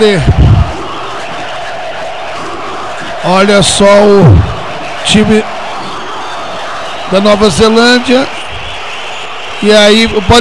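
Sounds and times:
speech: 0.0s - 0.6s, 3.2s - 5.6s, 7.1s - 8.4s, 9.6s - 10.3s
football crowd chanting at a Brazil versus New Zealand match: 0.0s - 7.1s.

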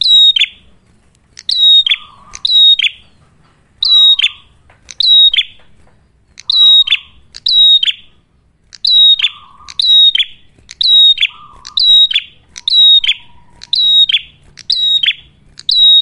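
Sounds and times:
Ashy tailorbird piercing whistled notes ending in a rasp: 1.4s - 3.2s, 3.8s - 5.6s, 6.4s - 8.1s, 8.8s - 15.9s.

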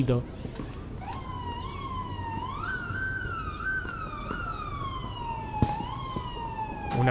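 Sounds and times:
police sirens arriving: 0.0s - 7.0s.

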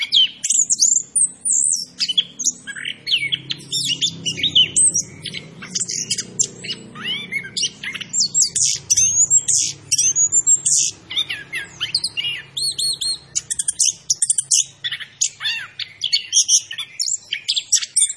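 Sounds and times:
orange-headed thrush singing: 0.0s - 18.1s.

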